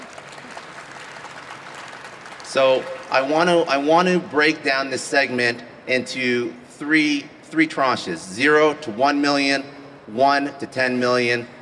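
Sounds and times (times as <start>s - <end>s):
audience clapping: 0.0s - 3.8s
speech: 2.5s - 11.6s.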